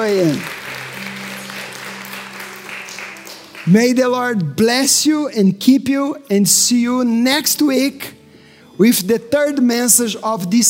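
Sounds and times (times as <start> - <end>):
speech: 0.0 - 0.6, 3.7 - 8.2, 8.8 - 10.6
audience applauding: 0.0 - 4.0.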